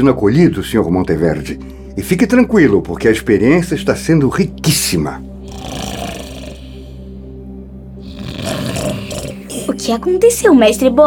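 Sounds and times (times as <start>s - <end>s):
speech: 0.0s - 5.9s, 9.8s - 11.0s
person snoring while asleep: 5.4s - 7.1s, 8.0s - 9.8s.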